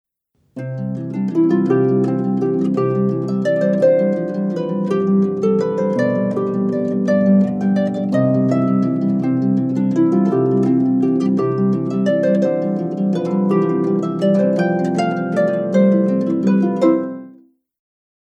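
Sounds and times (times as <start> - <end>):
harp sonatina: 0.6 - 17.4.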